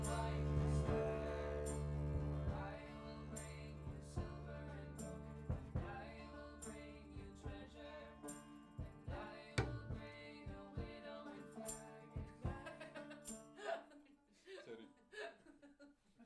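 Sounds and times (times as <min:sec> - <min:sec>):
bass recorded through a microphone: 0:00.0 - 0:11.2
laughter: 0:12.5 - 0:15.8.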